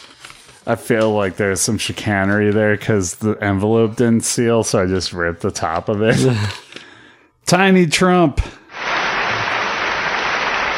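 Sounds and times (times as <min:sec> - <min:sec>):
speech: 0:00.7 - 0:06.6, 0:07.5 - 0:08.6
applause: 0:08.8 - 0:10.7.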